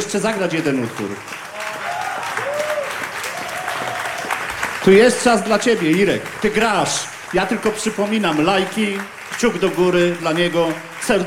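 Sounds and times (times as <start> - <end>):
speech: 0.0 - 1.4, 4.8 - 11.2
audience applause: 0.0 - 11.2.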